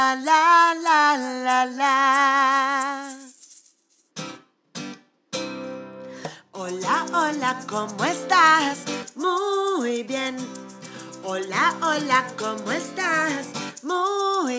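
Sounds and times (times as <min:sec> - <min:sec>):
greeting song sung in Spanish: 0:00.0 - 0:03.4, 0:06.5 - 0:14.5.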